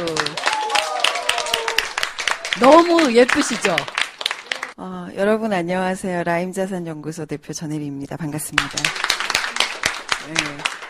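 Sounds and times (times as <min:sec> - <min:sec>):
audience clapping: 0:00.0 - 0:04.8, 0:08.6 - 0:10.8
speech: 0:02.6 - 0:04.0, 0:04.8 - 0:09.1, 0:10.2 - 0:10.8.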